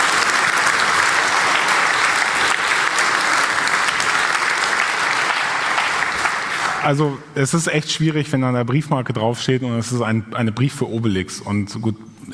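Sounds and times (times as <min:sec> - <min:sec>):
audience applause: 0:00.0 - 0:07.1
speech: 0:06.8 - 0:12.3.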